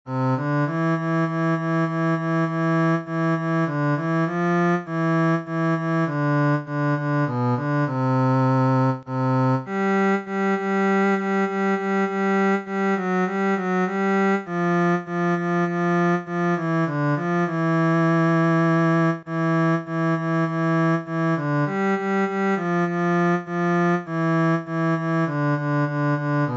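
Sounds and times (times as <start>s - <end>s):
anthem on cello: 0.1s - 26.5s.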